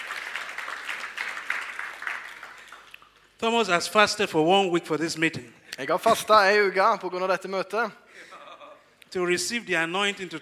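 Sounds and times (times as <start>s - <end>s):
audience applause: 0.0s - 3.2s
speech: 3.4s - 8.3s, 9.1s - 10.4s.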